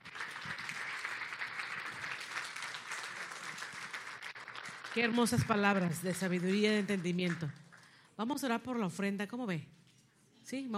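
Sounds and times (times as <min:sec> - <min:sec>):
audience applause: 0:00.0 - 0:07.2
speech: 0:05.0 - 0:07.6, 0:08.2 - 0:09.8, 0:10.5 - 0:10.7.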